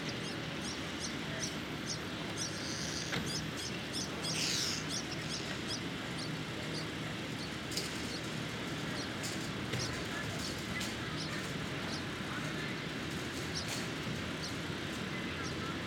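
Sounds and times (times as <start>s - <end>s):
morning traffic and murmuring on a Brooklyn street: 0.0s - 15.8s
short bright bird chirps: 0.1s - 6.8s.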